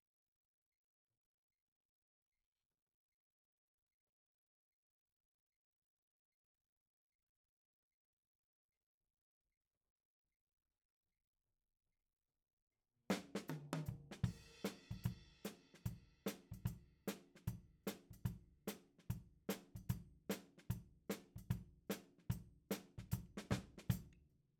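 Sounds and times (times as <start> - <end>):
tom drum: 13.1 - 24.0.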